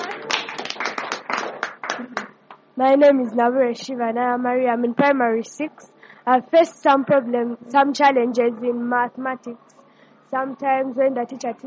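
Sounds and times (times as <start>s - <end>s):
audience clapping for a teacher at a school gathering: 0.0s - 2.6s
speech: 2.8s - 9.7s, 10.3s - 11.6s.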